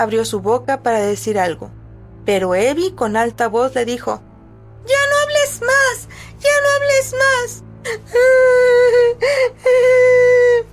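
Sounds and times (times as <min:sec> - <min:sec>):
speech: 0:00.0 - 0:10.7
girl crying with wailing whimpers: 0:07.8 - 0:10.7.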